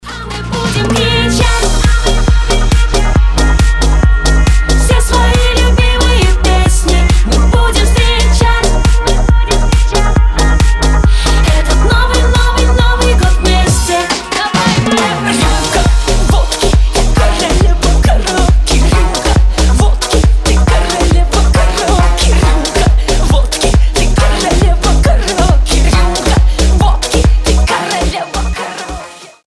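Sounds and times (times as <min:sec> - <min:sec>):
karaoke singing: 0:00.0 - 0:29.4.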